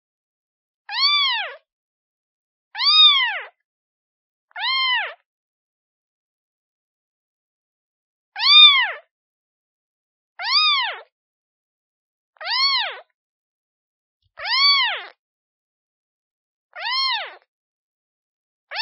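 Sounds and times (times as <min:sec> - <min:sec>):
kitten meowing: 0:00.9 - 0:01.6, 0:02.8 - 0:03.5, 0:04.5 - 0:05.2, 0:08.4 - 0:09.0, 0:10.4 - 0:11.1, 0:12.4 - 0:13.0, 0:14.4 - 0:15.2, 0:16.8 - 0:17.4.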